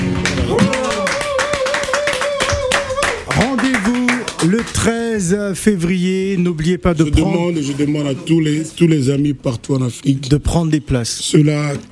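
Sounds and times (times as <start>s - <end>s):
crowd applauding: 0.0s - 5.3s
voices cheering and calling out: 0.3s - 4.7s
speech: 4.6s - 11.8s.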